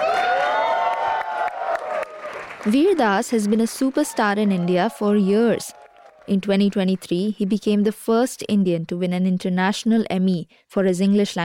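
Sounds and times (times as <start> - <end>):
theater crowd cheering and whooping for comedian Veer Das: 0.0 - 2.8, 3.5 - 6.3
sharp claps: 0.0 - 7.2
speech: 2.6 - 11.4.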